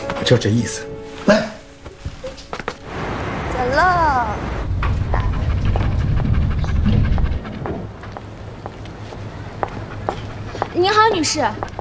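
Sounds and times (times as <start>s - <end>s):
speech: 0.2s - 1.6s, 10.8s - 11.7s
heavy low rumble: 3.0s - 10.3s
dog panting as it walks into a building: 4.9s - 11.7s.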